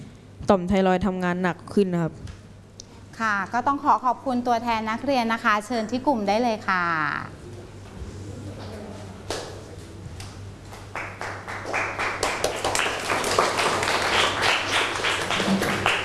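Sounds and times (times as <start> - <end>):
speech: 0.5 - 2.3, 3.2 - 7.4
audience applause: 10.8 - 16.0.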